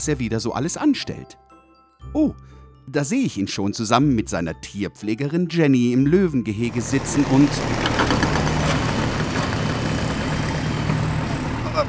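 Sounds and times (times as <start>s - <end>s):
speech: 0.0s - 7.9s
heavy construction machinery engine running: 6.5s - 11.8s.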